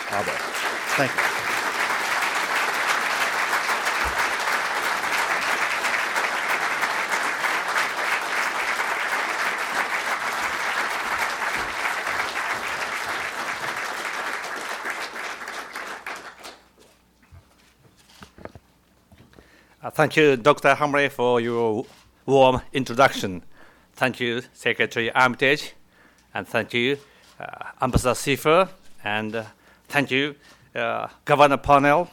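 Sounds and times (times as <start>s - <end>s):
audience applause: 0.0s - 16.7s
speech: 0.1s - 1.4s, 20.0s - 32.1s.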